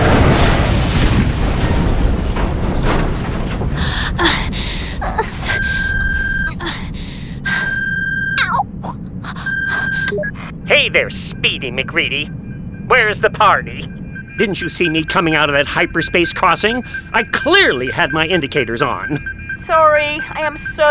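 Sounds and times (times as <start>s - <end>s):
spaceship crash rumble and impacts: 0.0s - 4.1s
electronic alarm tone: 5.0s - 20.8s
speech: 11.0s - 20.8s.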